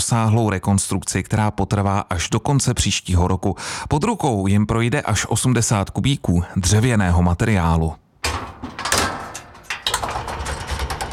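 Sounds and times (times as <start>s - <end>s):
speech: 0.0s - 8.0s
goods-passenger lift running: 8.2s - 11.1s.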